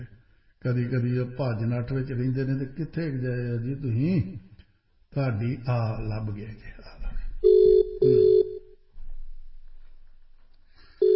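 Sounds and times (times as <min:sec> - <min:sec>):
speech: 0:00.0 - 0:04.5, 0:05.1 - 0:07.0
ringback tone of an outgoing telephone call: 0:07.4 - 0:08.7, 0:11.0 - 0:11.1.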